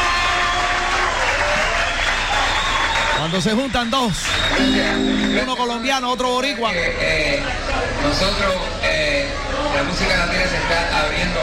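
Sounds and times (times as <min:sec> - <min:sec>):
audience applause for a performer: 0:00.0 - 0:05.7
speech: 0:03.3 - 0:11.4.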